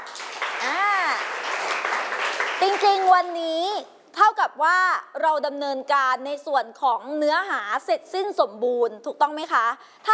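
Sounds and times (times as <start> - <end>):
group applauding the student groups: 0.0 - 3.4
speech: 2.8 - 10.1.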